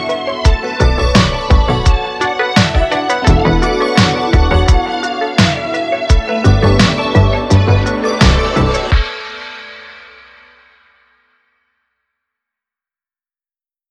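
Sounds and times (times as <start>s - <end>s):
dark synthwave music: 0.0s - 11.0s.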